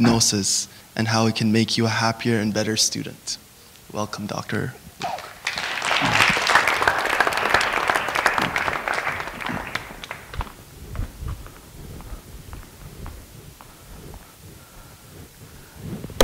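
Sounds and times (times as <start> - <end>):
speech: 0.0 - 5.2
audience clapping: 5.0 - 10.7.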